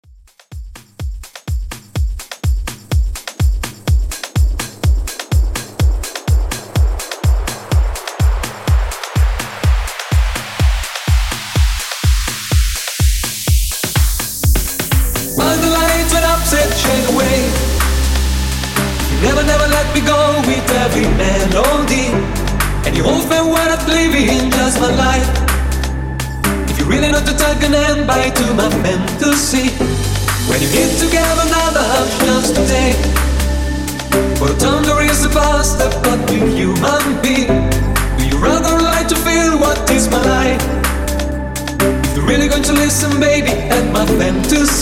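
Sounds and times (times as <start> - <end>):
club bootleg dance music: 0.1 - 44.8.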